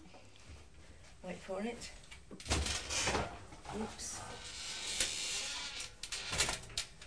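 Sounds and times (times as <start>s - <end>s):
speech: 1.2s - 2.6s, 3.7s - 4.5s
ironing board being folded down, creaking and clunking: 2.3s - 7.0s.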